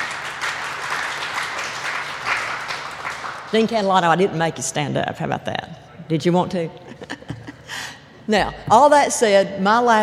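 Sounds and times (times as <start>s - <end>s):
crowd clapping: 0.0s - 4.0s
speech: 3.5s - 7.1s, 8.3s - 10.0s.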